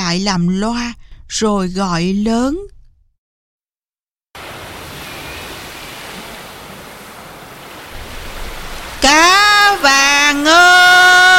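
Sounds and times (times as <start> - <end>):
speech: 0.1 - 2.7, 10.3 - 10.7
sea waves rippling along a shore: 4.4 - 11.3.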